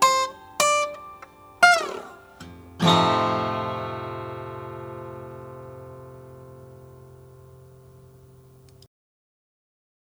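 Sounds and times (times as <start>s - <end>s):
koa Hawaiian guitar: 0.0s - 8.8s.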